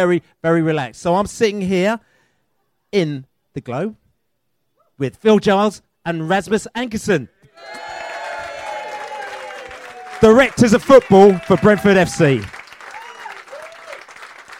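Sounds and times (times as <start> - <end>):
speech: 0.0 - 2.1, 2.9 - 4.0, 5.0 - 7.9, 10.2 - 12.6
audience applause: 7.6 - 14.5.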